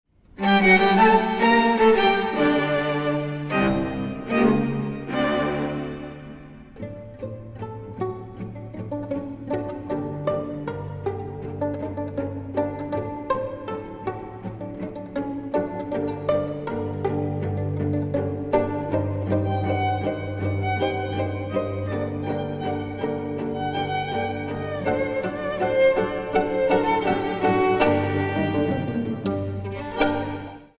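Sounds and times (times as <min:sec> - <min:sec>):
tango music: 0:00.3 - 0:30.7.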